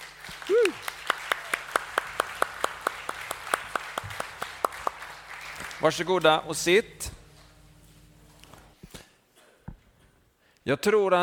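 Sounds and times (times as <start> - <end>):
audience applauding the young worship team: 0.0 - 6.6
speech: 5.8 - 7.2, 10.7 - 11.2.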